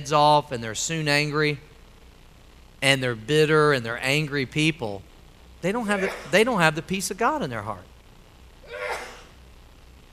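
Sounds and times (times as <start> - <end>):
speech: 0.0 - 1.7, 2.8 - 7.9
single human sneeze: 5.8 - 6.4, 8.7 - 9.4.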